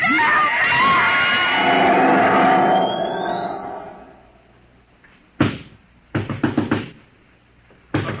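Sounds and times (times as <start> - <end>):
swirling mechanical whir with a rising whine: 0.7 - 4.9
heavy pounding on a door: 5.4 - 7.0.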